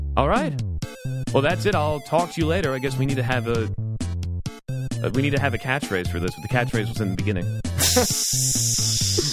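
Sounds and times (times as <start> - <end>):
speech: 0.1 - 3.8, 5.0 - 9.3
sizzle sound effect: 7.8 - 9.3.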